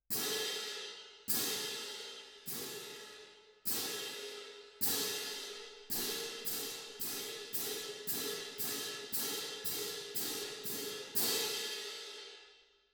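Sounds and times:
percussion: 0.0s - 12.8s.

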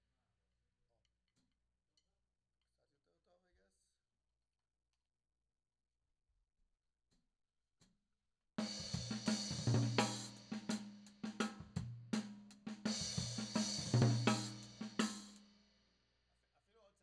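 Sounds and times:
tom drum: 8.6s - 15.5s.

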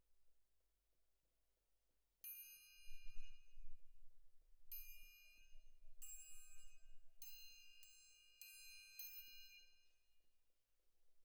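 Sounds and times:
main percussion: 2.2s - 10.0s.

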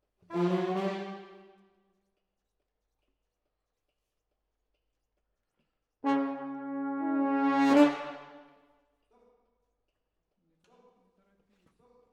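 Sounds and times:
horns playing: 0.3s - 1.5s, 6.0s - 8.5s.

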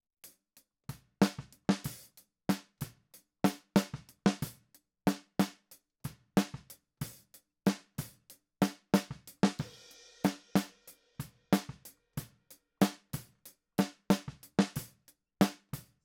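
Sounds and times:
snare drum: 1.2s - 2.8s, 3.5s - 5.6s, 6.4s - 10.7s, 11.6s - 11.8s, 12.8s - 13.2s, 13.8s - 15.8s.

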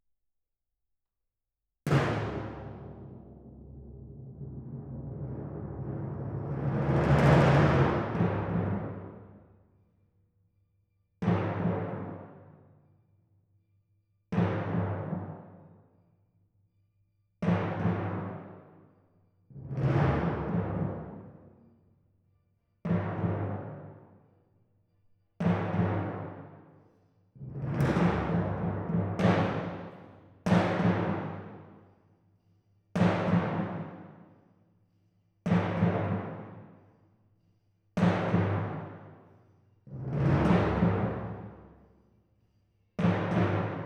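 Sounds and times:
timpani: 1.9s - 9.5s, 11.2s - 12.7s, 14.4s - 15.8s, 17.4s - 18.8s, 19.5s - 21.6s, 22.9s - 24.2s, 25.4s - 26.7s, 27.4s - 31.8s, 33.0s - 34.3s, 35.5s - 36.9s, 38.0s - 42.0s, 43.0s - 43.8s.

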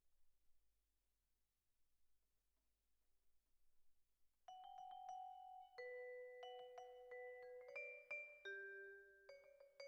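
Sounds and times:
vibraphone: 4.5s - 9.8s.

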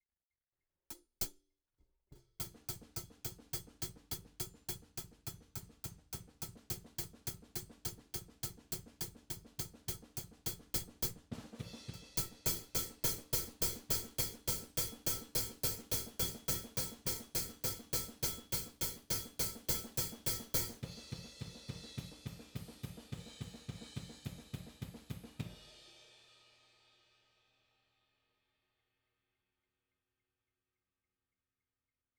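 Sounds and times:
hi-hat: 2.4s - 25.4s.

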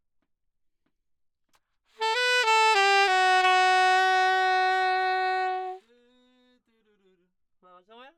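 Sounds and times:
saxophone: 2.0s - 5.8s.

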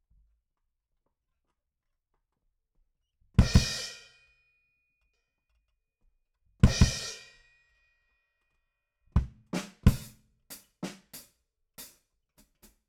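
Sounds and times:
bass drum: 9.2s - 10.1s.

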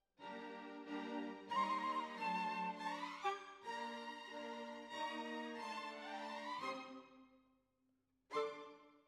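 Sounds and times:
flute: 0.9s - 7.0s.

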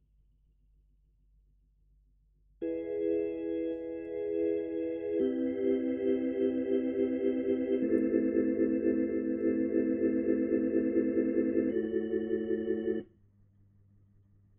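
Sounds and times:
Hammond organ: 2.6s - 13.0s.

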